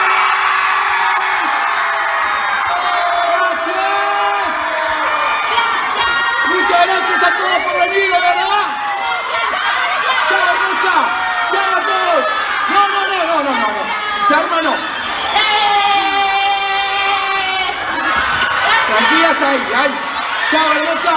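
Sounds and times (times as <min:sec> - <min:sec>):
audience at a fan event cheering and shouting: 0:00.0 - 0:21.1
speech: 0:19.5 - 0:21.1.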